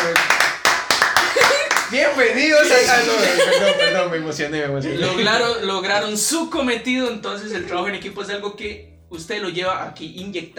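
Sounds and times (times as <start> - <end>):
applause, hands clapping: 0.0 - 2.2
laughter: 1.2 - 5.8
speech: 2.2 - 10.5.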